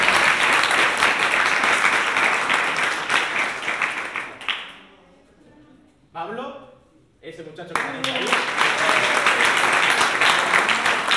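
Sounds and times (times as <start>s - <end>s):
audience applause at a game jam event: 0.0s - 4.8s, 7.8s - 11.1s
speech: 7.4s - 8.4s.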